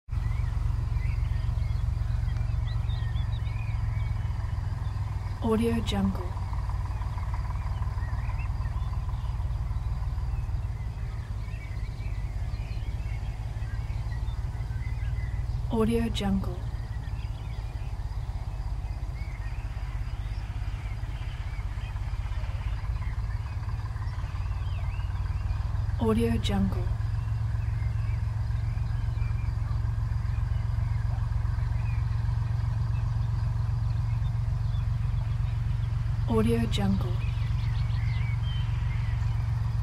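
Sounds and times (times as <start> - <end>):
tractor in the field: 0.1 - 39.8.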